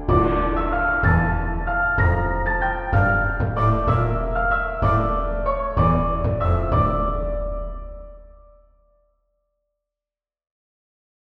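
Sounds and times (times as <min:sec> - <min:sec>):
orchestral music: 0:00.0 - 0:08.4.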